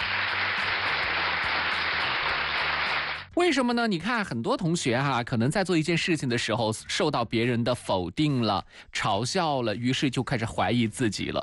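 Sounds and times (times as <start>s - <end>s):
applause: 0.0s - 3.3s
speech: 3.4s - 11.4s.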